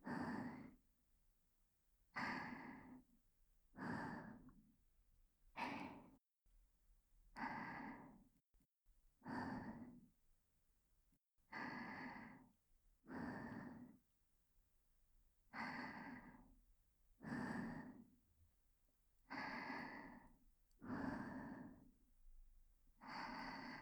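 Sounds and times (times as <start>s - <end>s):
breathing only: 0.0s - 0.8s, 2.2s - 3.1s, 3.8s - 4.7s, 5.6s - 6.2s, 7.4s - 8.3s, 9.2s - 10.1s, 11.5s - 14.1s, 15.6s - 16.6s, 17.2s - 18.2s, 19.3s - 22.0s, 23.0s - 23.8s.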